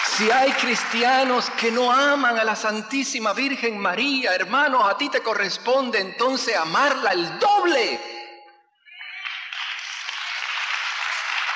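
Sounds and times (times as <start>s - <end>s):
audience applause: 0.0s - 2.0s, 9.0s - 11.5s
speech: 0.2s - 8.1s.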